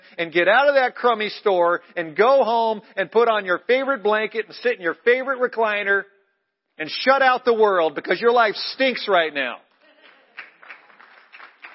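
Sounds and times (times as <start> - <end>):
speech: 0.2 - 6.1, 6.8 - 9.6
audience clapping: 9.9 - 11.7.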